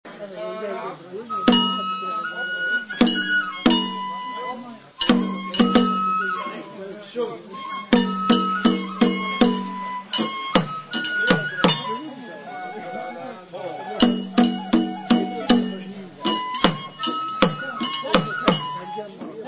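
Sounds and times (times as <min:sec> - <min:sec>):
banjo: 0:01.3 - 0:13.0, 0:13.7 - 0:19.4.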